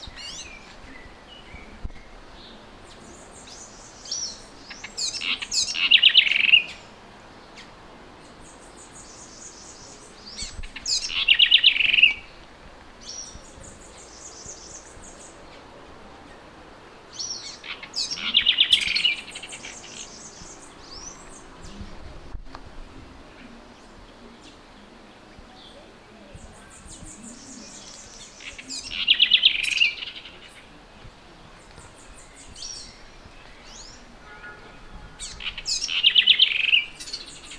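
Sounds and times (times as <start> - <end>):
Troglodytes musculus: 0.0 - 7.0, 7.6 - 12.4, 13.0 - 15.7, 17.0 - 21.9, 25.6 - 30.8, 31.5 - 34.2, 35.2 - 37.5.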